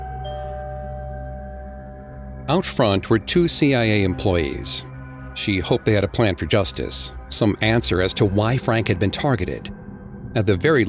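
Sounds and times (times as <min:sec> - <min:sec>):
doorbell ringing: 0:00.0 - 0:02.6
speech: 0:02.5 - 0:10.8.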